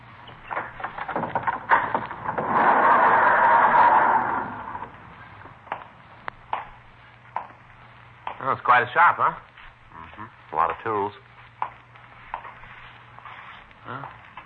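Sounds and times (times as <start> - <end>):
knocks and clunks: 0.3 - 5.0
garage door scraping open: 0.6 - 4.9
speech: 8.5 - 9.5, 10.8 - 11.3.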